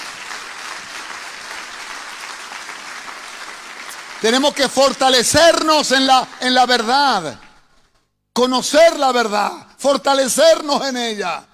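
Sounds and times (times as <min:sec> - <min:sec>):
audience applause: 0:00.0 - 0:06.8
speech: 0:04.2 - 0:07.4, 0:08.4 - 0:11.5.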